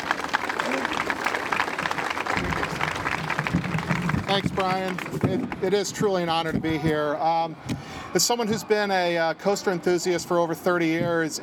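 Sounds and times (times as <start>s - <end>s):
audience applause: 0.0s - 5.8s
speech: 4.3s - 11.4s.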